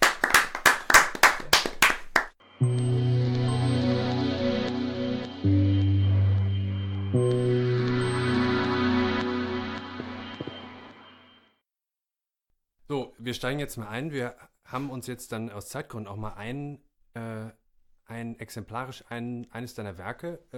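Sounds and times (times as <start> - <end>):
sharp evenly spaced claps: 0.0 - 2.4
steady music with sustained tones: 2.4 - 11.5
speech: 13.3 - 20.5.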